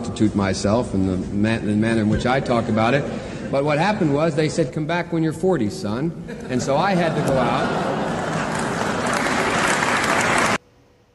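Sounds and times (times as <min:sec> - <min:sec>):
speech: 0:00.1 - 0:07.9
laughter: 0:01.8 - 0:04.4, 0:06.1 - 0:10.5
audience clapping: 0:07.3 - 0:10.6.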